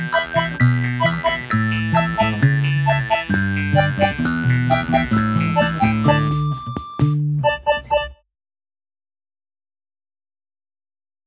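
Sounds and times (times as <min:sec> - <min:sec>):
karaoke Christmas song: 0:00.0 - 0:08.0.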